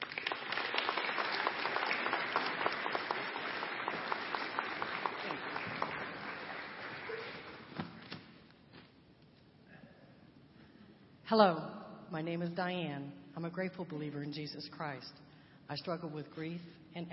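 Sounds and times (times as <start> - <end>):
audience applause at a Celebrate Recovery gathering: 0.0 - 7.7
speech: 11.3 - 17.1.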